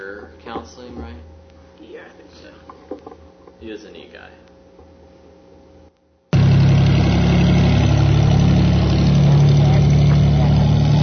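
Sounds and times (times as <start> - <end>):
speech: 3.6 - 4.5
small propeller plane engine running: 6.3 - 11.0.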